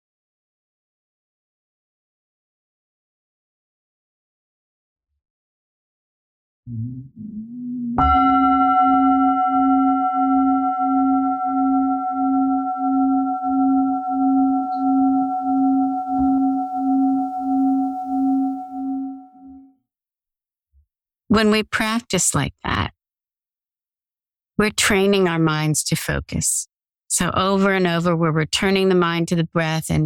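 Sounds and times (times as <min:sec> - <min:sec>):
speech: 0:06.7 - 0:08.6, 0:21.4 - 0:23.0, 0:24.6 - 0:30.0
meditation bell ringing: 0:08.0 - 0:19.6.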